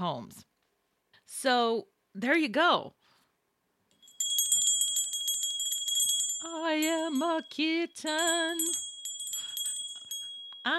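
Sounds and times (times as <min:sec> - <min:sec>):
speech: 0:00.0 - 0:00.5, 0:01.3 - 0:03.0, 0:06.4 - 0:08.8
small toy bell jingling: 0:04.0 - 0:10.7.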